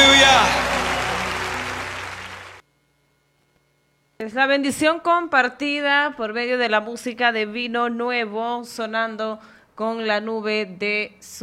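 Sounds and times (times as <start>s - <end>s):
crowd applauding: 0.0s - 2.6s
speech: 4.2s - 11.4s.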